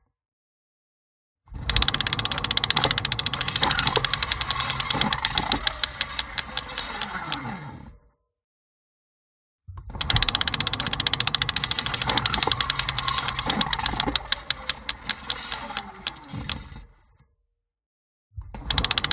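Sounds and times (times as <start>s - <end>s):
broken bike wheel ratchet spinning on contact mic: 1.7s - 7.3s, 10.0s - 16.7s, 18.7s - 19.1s.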